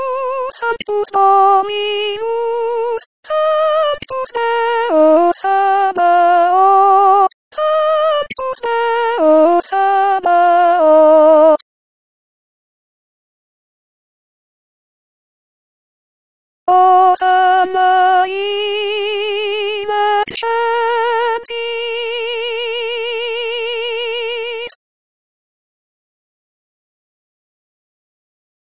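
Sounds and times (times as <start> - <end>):
soprano singing: 0.0 - 11.6, 16.7 - 24.8.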